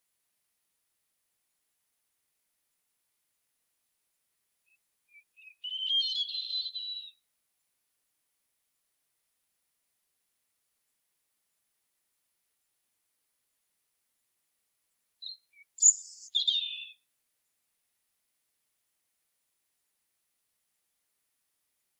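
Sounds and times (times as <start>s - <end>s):
European robin singing: 4.7s - 7.2s, 15.2s - 17.0s.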